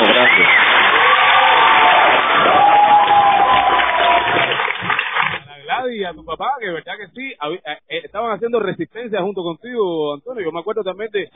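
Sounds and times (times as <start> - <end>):
crowd applause: 0.0 - 5.5
speech: 6.1 - 11.3.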